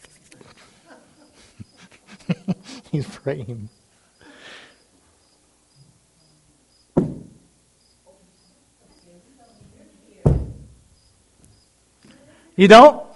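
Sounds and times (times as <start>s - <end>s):
cricket chirping: 0.8s - 9.7s, 10.7s - 11.9s
speech: 2.9s - 3.8s, 12.6s - 13.0s.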